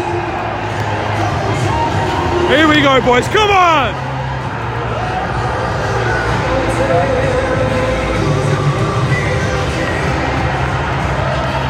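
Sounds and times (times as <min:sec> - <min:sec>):
crowd cheering: 0:00.0 - 0:11.6
speech: 0:02.5 - 0:04.1.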